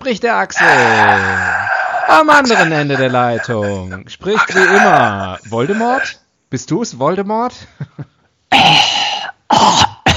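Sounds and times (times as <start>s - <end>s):
speech: 0.0s - 1.5s, 2.1s - 9.9s
loud coughing: 0.4s - 6.2s, 8.5s - 10.1s
throat clearing: 0.6s - 6.2s, 8.5s - 10.1s.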